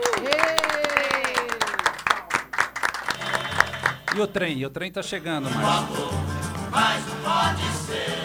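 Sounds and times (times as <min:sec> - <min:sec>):
applause: 0:00.0 - 0:04.3
speech: 0:04.2 - 0:08.1.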